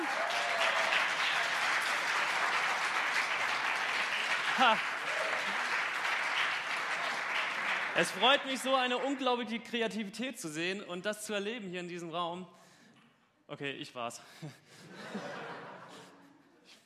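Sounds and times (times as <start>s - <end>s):
audience applause: 0.0s - 9.2s
laughter: 4.4s - 5.6s, 14.4s - 16.4s
speech: 4.6s - 5.0s, 8.0s - 12.6s, 13.5s - 15.3s.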